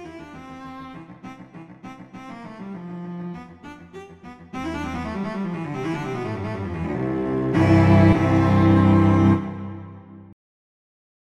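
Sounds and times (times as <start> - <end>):
two cellos playing a duet allegretto: 4.5 - 10.0.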